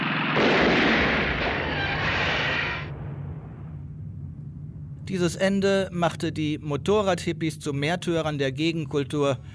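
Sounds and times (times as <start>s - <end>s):
gunshots from film scene: 0.2s - 3.8s
speech: 5.1s - 9.5s.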